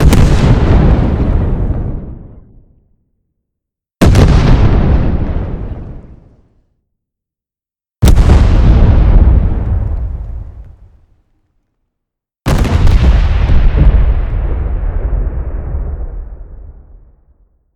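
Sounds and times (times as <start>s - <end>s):
beefy explosions: 0.0s - 2.5s, 4.0s - 6.3s, 8.0s - 11.0s, 12.5s - 17.1s.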